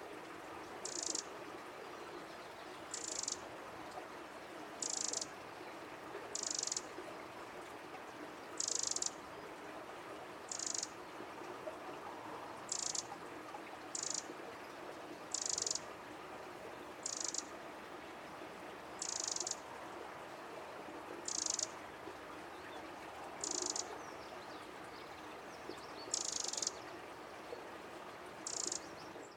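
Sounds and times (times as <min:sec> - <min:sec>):
steady background hiss: 0:00.0 - 0:29.3
Eurasian wren buzzy calls: 0:00.8 - 0:01.3, 0:02.9 - 0:03.4, 0:04.8 - 0:05.3, 0:06.3 - 0:06.8, 0:08.6 - 0:09.2, 0:10.5 - 0:10.9, 0:12.7 - 0:13.1, 0:13.9 - 0:14.2, 0:15.3 - 0:15.8, 0:17.0 - 0:17.5, 0:19.0 - 0:19.6, 0:21.2 - 0:21.7, 0:23.4 - 0:23.9, 0:26.1 - 0:26.8, 0:28.4 - 0:28.8.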